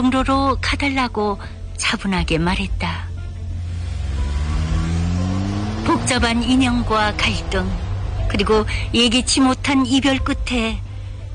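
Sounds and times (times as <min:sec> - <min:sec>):
speech: 0:00.0 - 0:03.0, 0:05.8 - 0:10.8
taxi car engine revving: 0:03.0 - 0:11.0.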